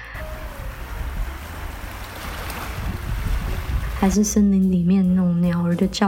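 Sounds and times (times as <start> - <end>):
ocean waves on island shore: 0.1 - 4.5
wind noise: 0.2 - 4.5
speech: 4.0 - 6.0.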